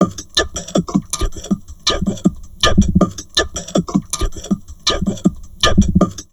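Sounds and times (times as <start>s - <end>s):
crazy processed drum loops at 160: 0.0s - 6.3s.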